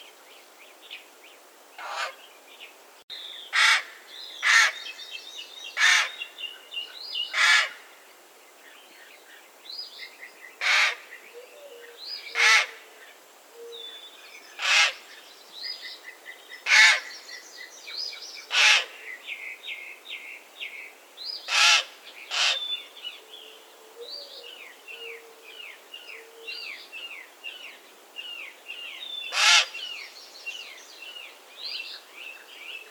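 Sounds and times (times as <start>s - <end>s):
raven calling: 1.8s - 2.2s, 3.5s - 4.8s, 5.8s - 6.2s, 7.3s - 7.8s, 10.6s - 12.9s, 14.6s - 15.0s, 16.7s - 17.1s, 18.5s - 19.0s, 21.5s - 22.7s, 29.3s - 29.9s.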